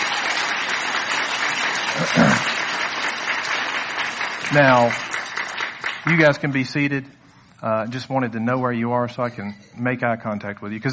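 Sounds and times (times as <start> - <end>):
audience applause: 0.0 - 6.6
speech: 2.0 - 2.5, 4.5 - 5.0, 6.0 - 10.9.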